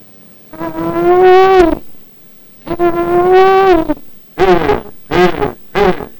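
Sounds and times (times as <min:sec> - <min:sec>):
person calling to pigs: 0:00.6 - 0:01.9, 0:02.7 - 0:06.1.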